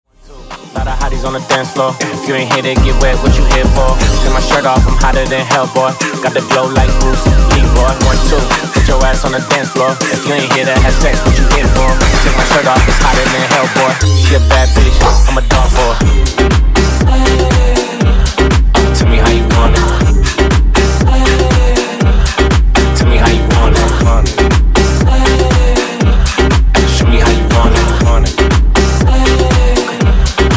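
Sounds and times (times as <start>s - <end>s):
funk intro music at 120 BPM: 0.2s - 30.5s.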